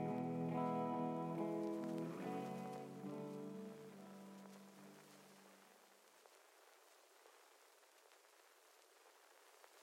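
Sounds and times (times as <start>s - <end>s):
chill instrumental beats: 0.0s - 5.2s.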